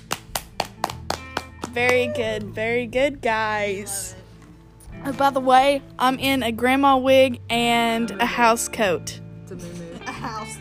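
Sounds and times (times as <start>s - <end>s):
hands clapping: 0.0s - 2.6s
speech: 1.8s - 4.2s, 5.0s - 10.4s.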